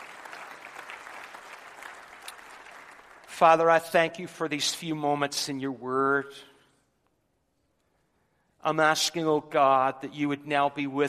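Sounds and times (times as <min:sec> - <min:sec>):
people clapping in praise to the Lord: 0:00.0 - 0:03.9
speech: 0:03.4 - 0:06.5, 0:08.6 - 0:11.0.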